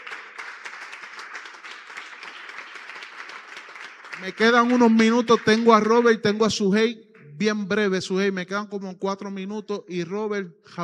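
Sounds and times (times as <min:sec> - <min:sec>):
audience applause: 0:00.0 - 0:06.4
speech: 0:04.2 - 0:10.8.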